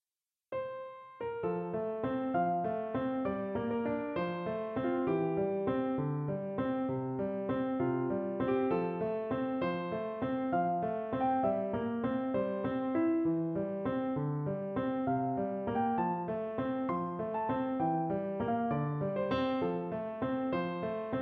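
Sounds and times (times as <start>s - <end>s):
calm piano: 0.5s - 21.2s.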